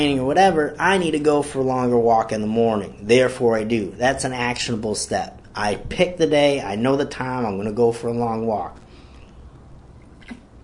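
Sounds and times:
speech: 0.0 - 8.8
low noise: 0.0 - 10.6
person sipping coffee: 10.0 - 10.6.

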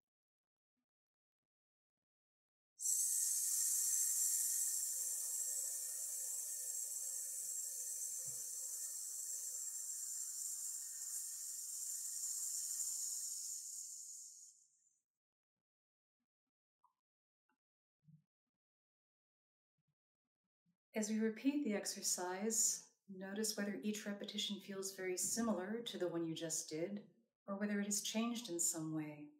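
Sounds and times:
long breathy vocal hiss on one exhale: 2.8 - 14.6
speech: 21.0 - 29.3.

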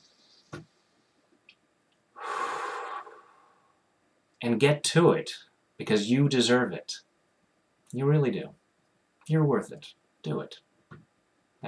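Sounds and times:
deep breath: 2.2 - 3.8
speech: 4.4 - 7.1, 7.9 - 8.6, 9.3 - 11.0.

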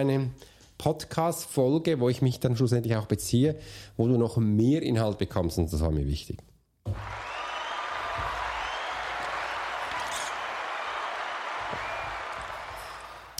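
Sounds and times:
speech: 0.0 - 7.1
applause: 6.9 - 13.3.

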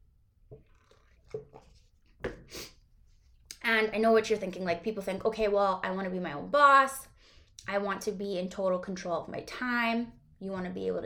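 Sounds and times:
person sipping coffee: 0.6 - 2.8
speech: 1.3 - 2.7, 3.7 - 11.0.

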